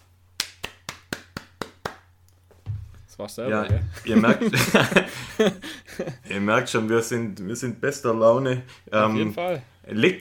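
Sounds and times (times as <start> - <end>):
hand clapping: 0.4 - 2.1
speech: 3.2 - 10.1
laughter: 3.9 - 6.3.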